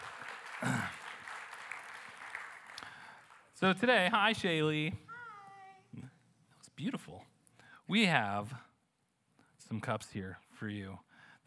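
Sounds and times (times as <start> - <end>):
audience applause: 0.0 - 3.8
speech: 3.6 - 5.0, 6.8 - 7.3, 7.9 - 8.6, 9.7 - 11.4.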